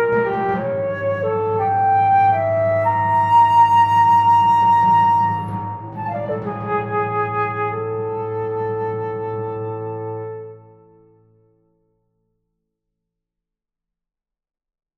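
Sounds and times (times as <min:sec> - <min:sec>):
medium tempo orchestral mystery music: 0:00.0 - 0:11.0.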